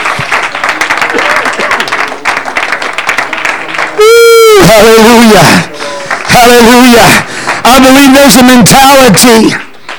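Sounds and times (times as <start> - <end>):
audience clapping hands: 0.0 - 9.9
speech: 4.6 - 5.7, 6.3 - 9.7.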